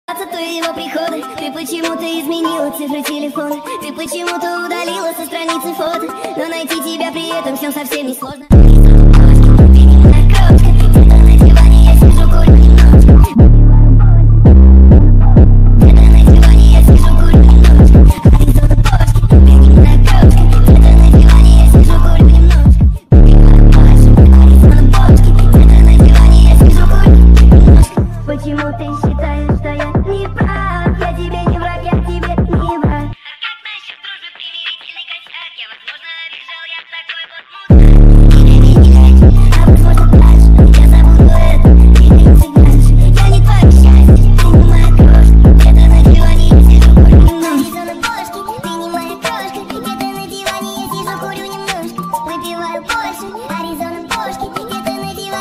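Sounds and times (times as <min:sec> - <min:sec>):
TikTok remix bass: 0:08.5 - 0:33.2, 0:37.7 - 0:48.2.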